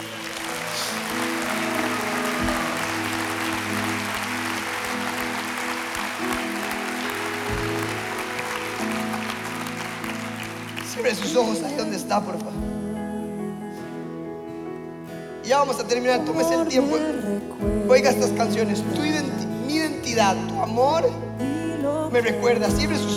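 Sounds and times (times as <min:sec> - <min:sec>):
audience applause: 0:00.0 - 0:12.2
speech: 0:11.0 - 0:12.7, 0:15.5 - 0:23.1.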